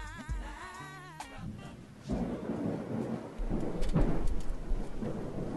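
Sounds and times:
thunder from Hurricane Matthew: 1.4 - 5.5
rain from Hurricane Matthew: 1.5 - 5.5.

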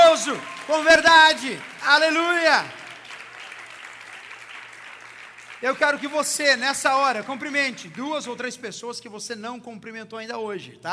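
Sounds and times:
audience applauding: 0.0 - 8.5
speech: 0.2 - 2.8, 5.6 - 10.9.

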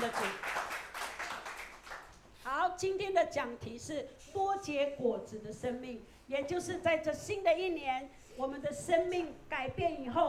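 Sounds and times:
audience clapping hands: 0.0 - 2.3
speech: 2.8 - 10.2.

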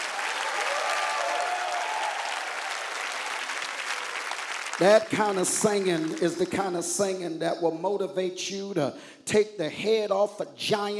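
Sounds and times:
faint whoops and raised voices: 0.0 - 3.2
audience clapping: 0.0 - 7.3
speech: 4.8 - 10.9.

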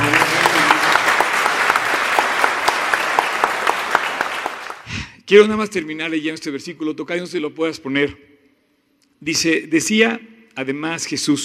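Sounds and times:
audience applause: 0.0 - 4.9
speech: 5.3 - 8.3, 9.2 - 11.4.

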